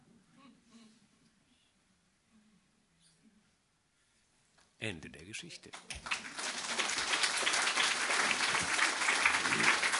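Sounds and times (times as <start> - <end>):
speech: 4.8 - 6.3
applause: 5.7 - 9.9.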